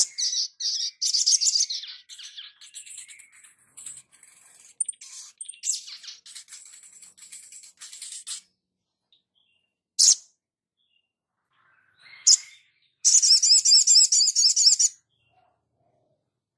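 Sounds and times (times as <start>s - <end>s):
spiderhunter twittering song: 0.0s - 15.6s.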